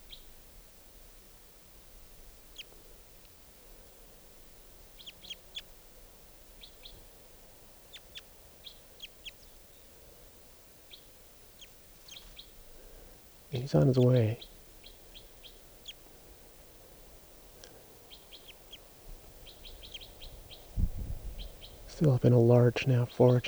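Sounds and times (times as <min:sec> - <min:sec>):
wild bird calling: 0:12.1 - 0:16.1, 0:17.5 - 0:23.4
speech: 0:13.7 - 0:14.5, 0:22.0 - 0:23.4.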